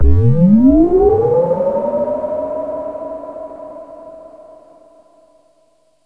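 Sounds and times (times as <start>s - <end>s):
synth effects: 0.0s - 2.0s.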